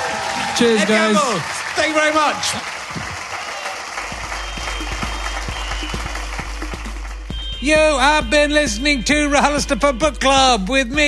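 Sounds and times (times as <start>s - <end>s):
audience applause: 0.0s - 7.3s
speech: 0.6s - 3.0s, 7.6s - 11.0s.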